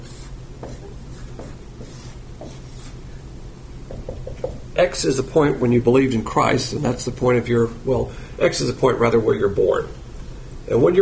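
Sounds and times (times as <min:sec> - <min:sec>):
pen scratching on a surface drawing a small diagram: 0:00.0 - 0:03.0
speech: 0:04.8 - 0:10.0, 0:10.7 - 0:11.0.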